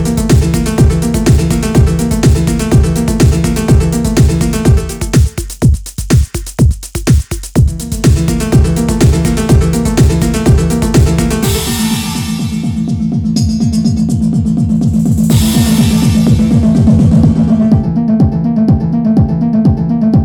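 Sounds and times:
resonant chords through a Lexicon PCM70 reverb unit: 0:00.0 - 0:05.6, 0:07.6 - 0:20.2.

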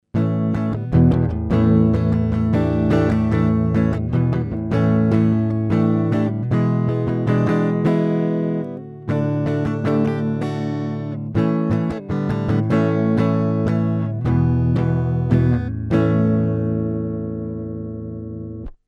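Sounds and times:
clean electric guitar through Mackie DLZ Creator: 0:00.0 - 0:18.8.

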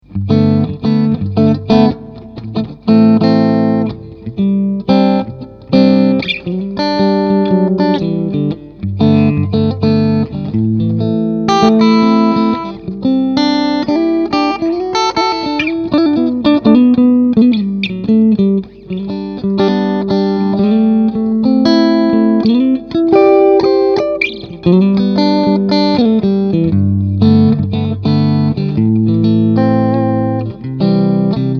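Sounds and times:
Tone King Sky King amplifier clean triode channel: 0:00.0 - 0:31.5.

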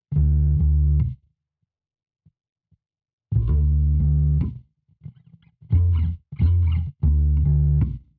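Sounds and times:
bass: 0:00.1 - 0:01.3, 0:03.3 - 0:08.1.

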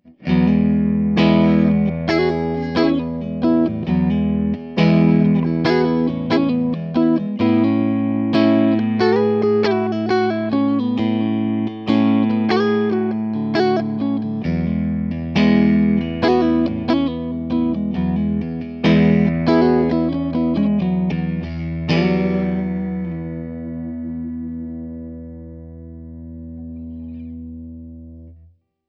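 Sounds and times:
clean electric guitar on neck and middle pickups: 0:00.0 - 0:28.6.

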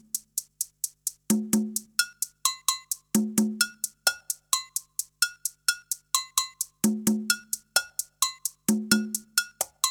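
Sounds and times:
agogo bell percussion: 0:01.3 - 0:09.8.

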